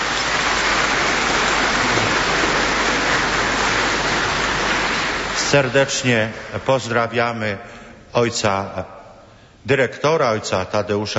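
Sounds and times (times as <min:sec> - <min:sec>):
audience applause: 0:00.0 - 0:07.0
speech: 0:05.5 - 0:09.0, 0:09.6 - 0:11.1.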